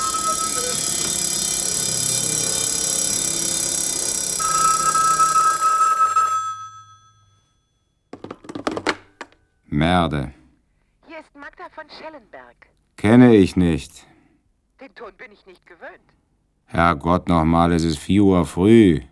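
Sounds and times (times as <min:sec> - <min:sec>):
cuckoos: 0:00.0 - 0:06.8
bells: 0:00.0 - 0:07.6
clock chimes: 0:00.0 - 0:07.8
speech: 0:09.8 - 0:10.4, 0:11.8 - 0:14.1, 0:14.8 - 0:19.1.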